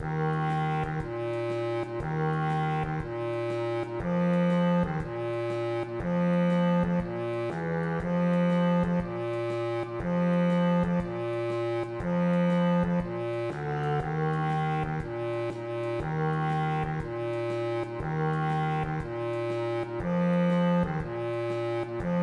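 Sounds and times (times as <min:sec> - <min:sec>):
tuba: 0:00.0 - 0:22.2.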